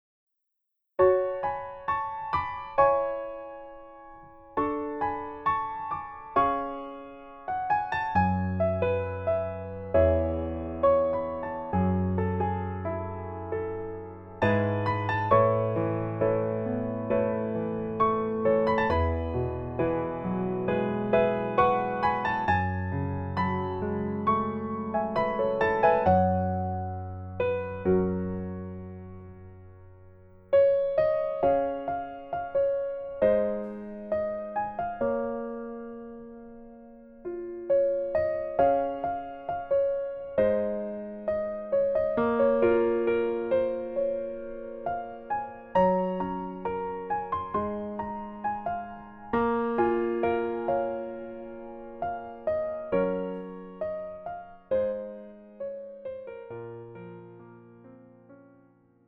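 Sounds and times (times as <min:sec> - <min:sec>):
piano melody backing track: 0:01.0 - 0:59.0.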